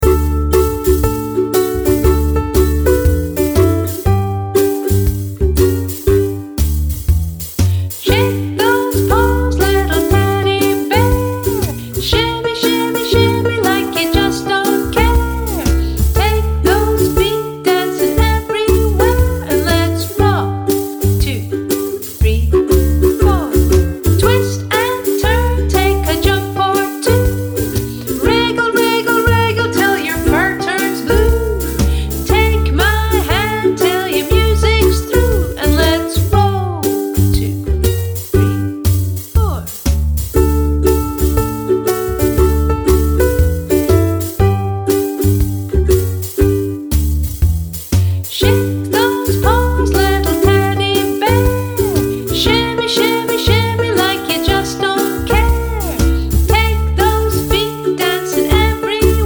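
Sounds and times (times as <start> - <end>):
rock backing track: 0.0 - 59.2
person singing: 8.0 - 37.8, 48.3 - 59.2.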